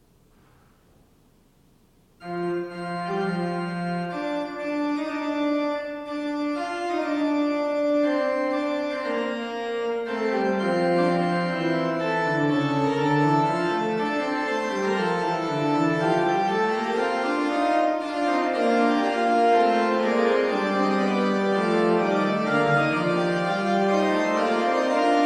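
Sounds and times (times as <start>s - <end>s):
organ postlude playing a national anthem: 2.2s - 25.2s.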